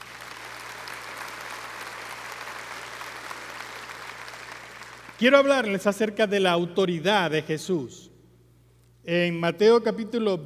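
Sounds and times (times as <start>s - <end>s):
audience applause: 0.0s - 5.2s
speech: 5.2s - 8.1s, 9.0s - 10.4s.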